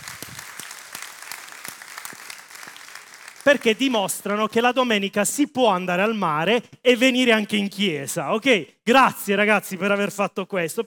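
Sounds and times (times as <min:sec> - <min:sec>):
audience at an evening church service applauding: 0:00.0 - 0:04.0
speech: 0:03.4 - 0:10.8.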